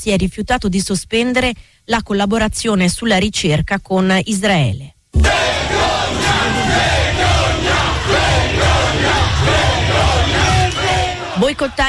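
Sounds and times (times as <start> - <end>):
speech: 0.0 - 5.4, 11.5 - 11.8
protesters chanting slogans: 5.2 - 11.8.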